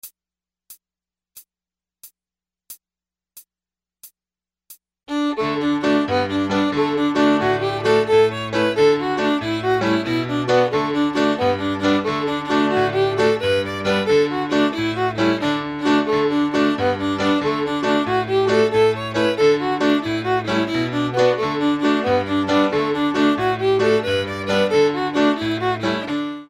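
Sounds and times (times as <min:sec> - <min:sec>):
jig tune: 0:05.1 - 0:26.4.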